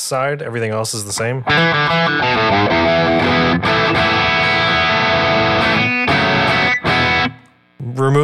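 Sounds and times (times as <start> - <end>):
speech: 0.1 - 4.3, 7.9 - 8.2
bright chimey electric guitar playing sustained chords: 1.4 - 7.6.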